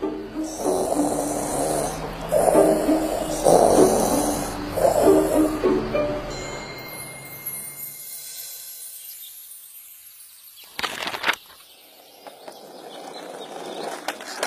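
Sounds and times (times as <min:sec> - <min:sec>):
snoring: 0:00.4 - 0:05.6.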